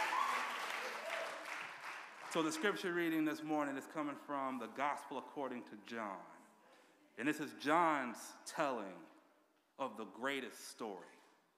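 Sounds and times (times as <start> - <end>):
faint voices and cheers: 0.0 - 1.4
audience clapping: 0.0 - 3.0
speech: 2.3 - 6.4, 7.2 - 9.1, 9.8 - 11.2.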